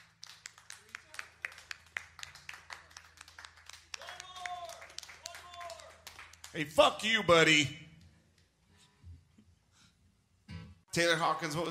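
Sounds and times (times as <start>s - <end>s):
small group clapping: 0.0s - 6.8s
speech: 6.6s - 7.8s, 10.9s - 11.7s.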